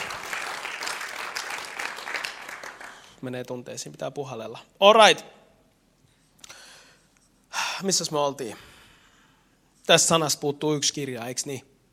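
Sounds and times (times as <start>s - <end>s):
audience applause: 0.0s - 3.2s
speech: 3.2s - 5.4s, 7.8s - 8.7s, 9.9s - 11.7s.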